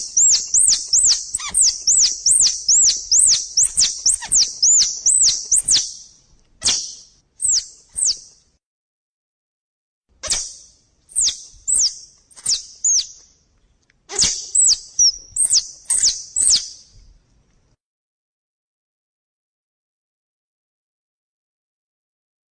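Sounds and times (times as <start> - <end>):
squirrel chattering: 0.0 - 5.8, 14.1 - 16.6.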